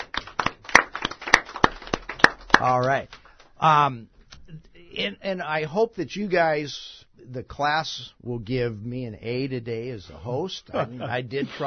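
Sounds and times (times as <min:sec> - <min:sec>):
small group clapping: 0:00.0 - 0:03.6
speech: 0:02.6 - 0:11.6.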